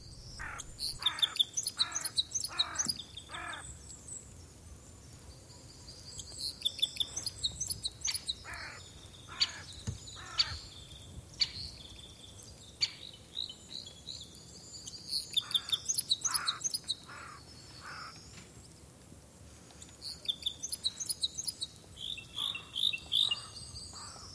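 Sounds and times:
Parrot Crossbill chipping calls: 0:00.1 - 0:03.7, 0:06.6 - 0:10.7, 0:15.2 - 0:18.2, 0:20.3 - 0:24.3.

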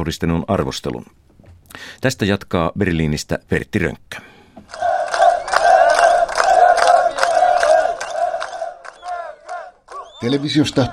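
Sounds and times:
speech: 0:00.0 - 0:04.8, 0:10.2 - 0:10.9
crowd of asylum seekers chanting: 0:04.7 - 0:10.9.

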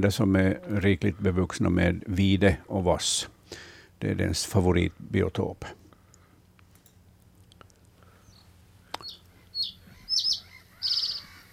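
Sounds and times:
speech: 0:00.0 - 0:05.8
reed bunting song: 0:08.1 - 0:11.5.

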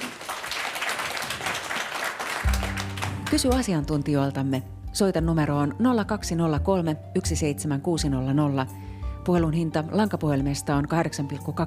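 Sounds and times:
audience applause: 0:00.0 - 0:03.4
low sustained musical tones: 0:02.5 - 0:07.1
speech: 0:03.3 - 0:11.6.

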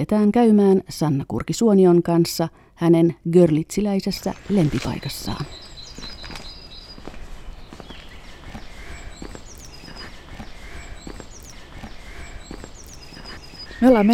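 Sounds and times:
speech: 0:00.0 - 0:05.7, 0:13.8 - 0:14.1
footsteps on a cobblestone street: 0:05.4 - 0:14.1.

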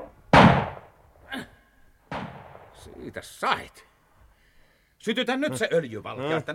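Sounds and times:
gunshot at a bear: 0:00.3 - 0:01.0, 0:02.1 - 0:02.8
speech: 0:02.8 - 0:03.9, 0:05.0 - 0:06.5.

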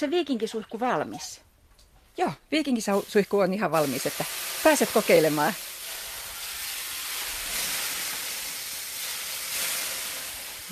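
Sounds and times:
speech: 0:00.0 - 0:01.5, 0:02.2 - 0:05.7
water thrown on hot sauna stove hissing: 0:02.8 - 0:10.6.

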